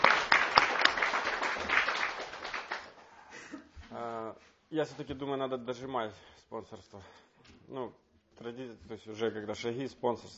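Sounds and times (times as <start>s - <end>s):
small group clapping: 0.0s - 3.2s
speech: 4.7s - 10.3s.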